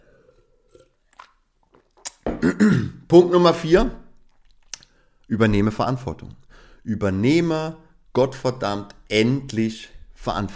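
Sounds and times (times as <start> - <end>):
speaker taking a quick sip of a drink: 0.0 - 2.3, 4.2 - 5.3
speech: 2.4 - 4.0, 5.3 - 10.5.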